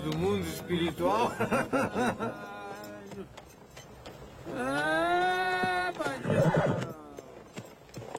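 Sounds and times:
speech: 0:00.1 - 0:02.5, 0:03.2 - 0:03.4, 0:04.4 - 0:05.0
laughter: 0:00.4 - 0:03.4, 0:04.4 - 0:07.4
horse neighing: 0:04.4 - 0:07.4.

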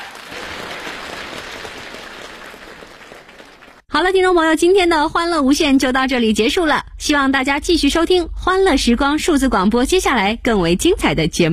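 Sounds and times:
audience applause: 0:00.0 - 0:03.9
speech: 0:04.0 - 0:11.5.

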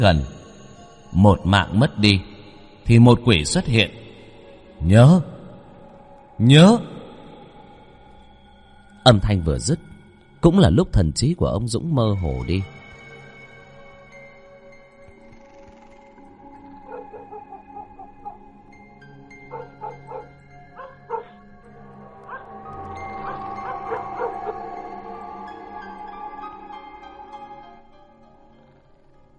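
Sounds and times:
speech: 0:00.0 - 0:00.4, 0:01.1 - 0:04.0, 0:04.8 - 0:05.3, 0:06.4 - 0:06.9, 0:09.0 - 0:12.8
steady tonal hum: 0:00.0 - 0:28.1
dogs whimpering cries: 0:15.4 - 0:18.7, 0:19.3 - 0:21.4, 0:22.2 - 0:25.0
dogs barking and yelping at night across a village hamlet: 0:16.6 - 0:18.7, 0:19.3 - 0:21.4, 0:22.0 - 0:25.0.

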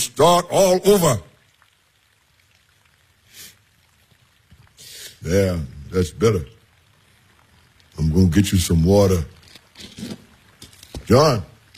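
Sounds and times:
rain falling: 0:00.0 - 0:11.7
speech: 0:00.1 - 0:01.3, 0:05.2 - 0:06.6, 0:08.0 - 0:09.4, 0:11.1 - 0:11.5.

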